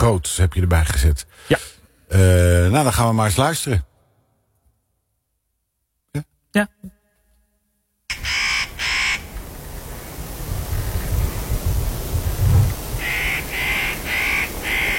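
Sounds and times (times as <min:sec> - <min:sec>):
speech: 0:00.0 - 0:03.9, 0:06.1 - 0:07.0
spotted nutcracker calls, harsh and rasping: 0:08.1 - 0:09.4, 0:13.0 - 0:14.9
low rumbling: 0:09.2 - 0:13.0.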